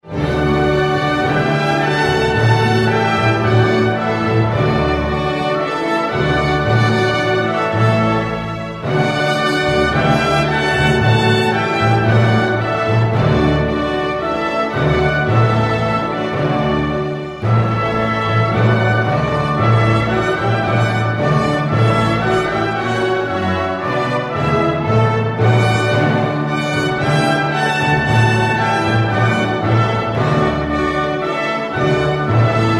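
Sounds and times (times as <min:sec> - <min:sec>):
anthem playing: 0:00.1 - 0:32.7.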